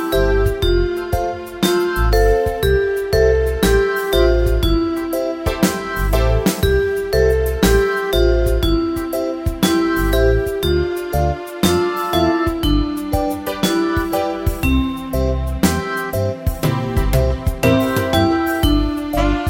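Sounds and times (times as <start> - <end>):
keyboards playing: 0.0 - 19.4.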